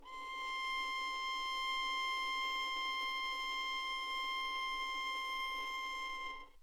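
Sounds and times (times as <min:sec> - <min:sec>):
violin: 0:00.0 - 0:06.6.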